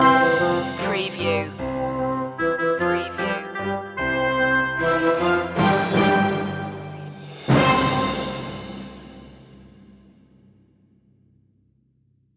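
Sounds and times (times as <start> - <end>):
orchestral traditional Christmas carol loop ending: 0.0 - 9.2.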